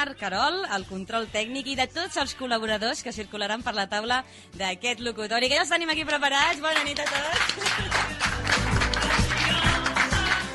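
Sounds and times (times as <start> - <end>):
speech: 0.0 - 8.3
live audience applause: 6.6 - 10.5.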